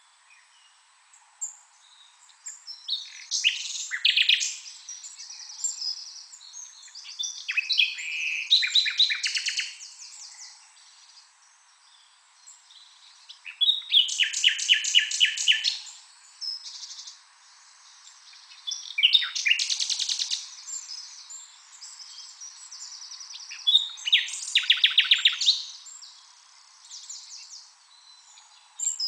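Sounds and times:
common nightingale singing: 0:00.0 - 0:29.0
birds chirping: 0:01.9 - 0:29.0.

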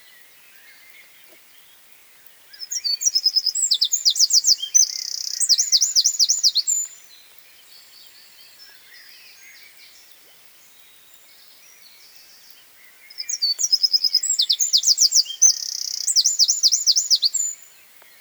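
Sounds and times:
Eurasian wren Troglodytes troglodytes singing: 0:02.6 - 0:07.1, 0:12.1 - 0:17.7.

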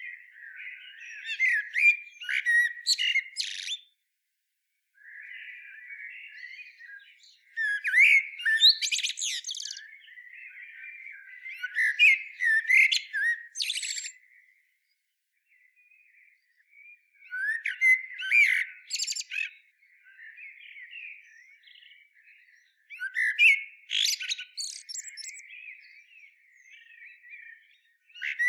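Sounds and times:
common blackbird singing: 0:00.0 - 0:04.0, 0:05.0 - 0:28.4.

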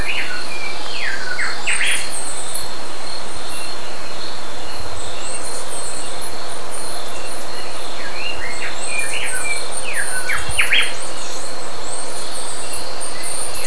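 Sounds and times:
bird chirping: 0:00.0 - 0:13.6
continuous high insect-like hum: 0:00.0 - 0:13.6.

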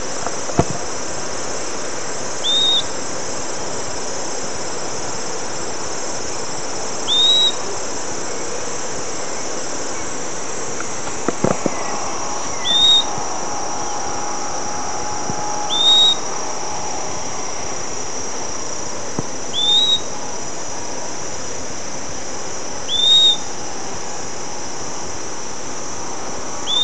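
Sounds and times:
steady hiss: 0:00.0 - 0:26.8
bird upslurred whistles: 0:02.4 - 0:02.9, 0:07.1 - 0:07.6, 0:12.5 - 0:13.2, 0:15.4 - 0:16.3, 0:19.5 - 0:20.1, 0:22.9 - 0:23.5, 0:26.7 - 0:26.8.

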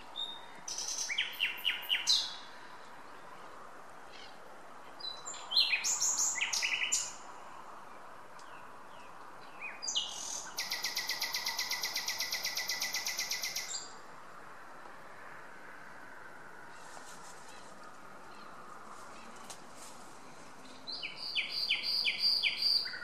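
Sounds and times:
common nightingale Luscinia megarhynchos singing whistled rattling and clicking phrases: 0:00.0 - 0:02.5, 0:05.0 - 0:07.3, 0:08.4 - 0:14.0, 0:20.6 - 0:23.0.

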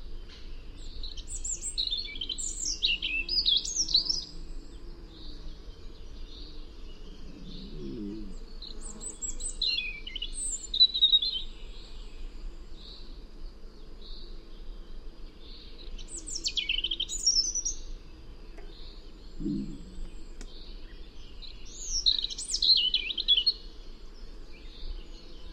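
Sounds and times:
noise: 0:00.0 - 0:25.5
European robin singing: 0:00.8 - 0:12.1, 0:15.4 - 0:23.7
low chattering: 0:19.3 - 0:20.4.

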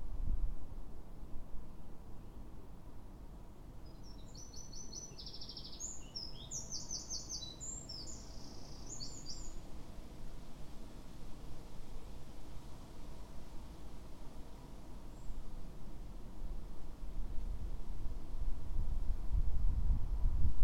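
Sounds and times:
low continuous rumble: 0:00.0 - 0:20.6
Eurasian wren singing: 0:03.9 - 0:09.6.

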